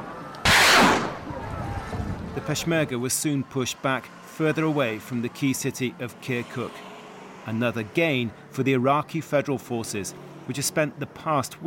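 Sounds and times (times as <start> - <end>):
artillery fire in fighting between Peshmerga and Iraqi forces near Kirkuk: 0.4 - 1.6
speech: 2.4 - 11.6.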